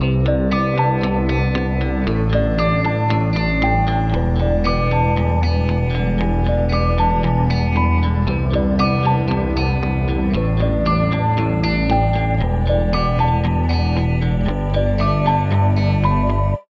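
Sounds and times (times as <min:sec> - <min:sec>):
guitar: 0:00.0 - 0:16.7.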